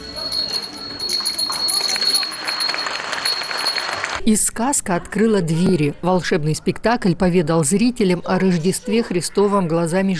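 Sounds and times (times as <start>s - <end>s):
small hand bell ringing: 0.0s - 4.2s
speech: 4.2s - 10.1s.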